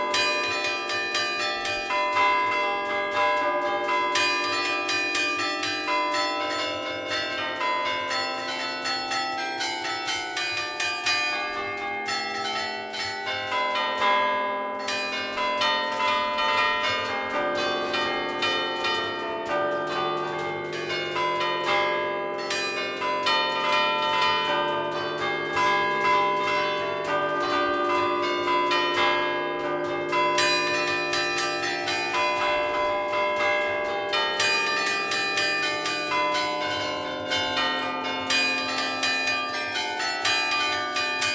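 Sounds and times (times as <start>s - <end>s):
church bells ringing in Genova, Liguria: 0.0s - 41.3s.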